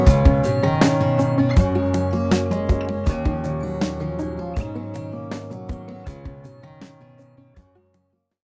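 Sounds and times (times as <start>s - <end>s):
folk music: 0.0s - 6.6s.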